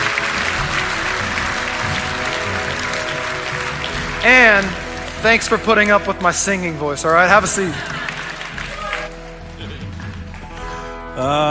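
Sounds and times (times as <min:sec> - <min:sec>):
church congregation applauding to welcome new members: 0:00.0 - 0:11.1
speech: 0:04.2 - 0:08.1, 0:11.2 - 0:11.5.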